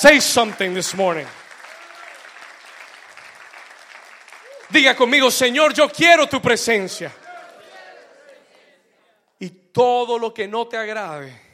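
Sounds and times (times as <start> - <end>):
speech: 0.0 - 1.4, 4.7 - 7.2, 9.4 - 11.4
audience applause: 0.0 - 5.7, 6.6 - 8.8.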